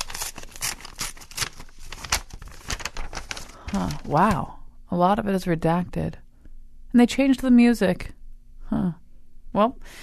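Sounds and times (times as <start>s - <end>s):
sealed paper envelope being ripped open: 0.0s - 4.3s
speech: 3.7s - 6.2s, 6.9s - 8.2s, 9.6s - 10.0s.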